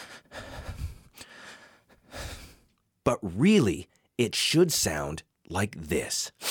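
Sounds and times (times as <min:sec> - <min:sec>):
person demonstrating stressed gasping breaths: 0:00.0 - 0:02.7
speech: 0:03.1 - 0:06.4.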